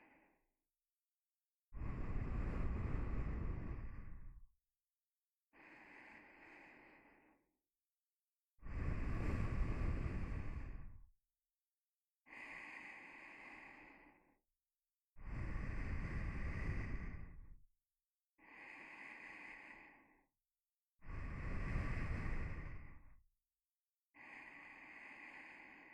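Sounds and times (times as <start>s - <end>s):
nose breathing while lying beside: 1.8s - 4.4s, 5.6s - 7.4s, 8.7s - 11.0s, 12.3s - 14.3s, 15.2s - 17.6s, 18.4s - 20.2s, 21.0s - 23.1s, 24.2s - 25.9s.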